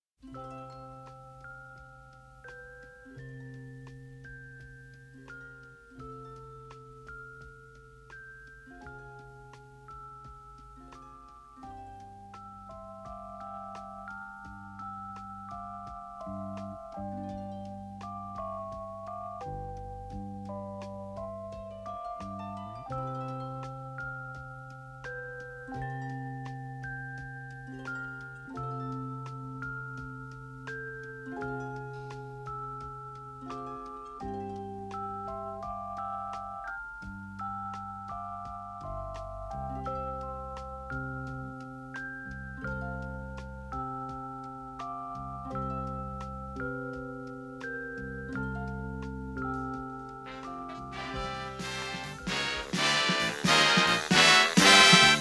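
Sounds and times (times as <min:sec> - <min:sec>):
instrumental music: 0:00.0 - 0:55.1.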